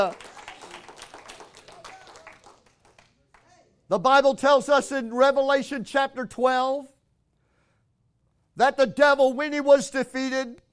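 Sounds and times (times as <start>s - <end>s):
speech: 0.0s - 0.3s, 3.9s - 6.9s, 8.6s - 10.6s
audience clapping hands: 0.0s - 3.6s.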